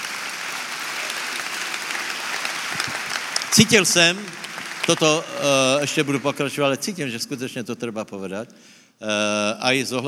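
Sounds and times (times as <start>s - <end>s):
audience applauding: 0.0s - 6.8s
speech: 3.5s - 10.0s.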